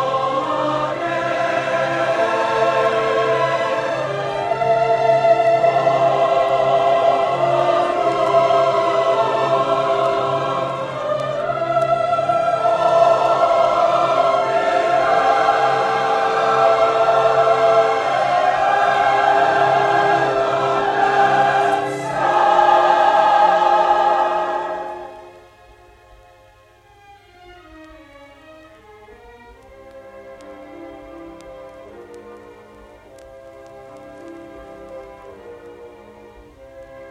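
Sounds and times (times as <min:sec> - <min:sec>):
wedding chorus singing: 0:00.0 - 0:25.6.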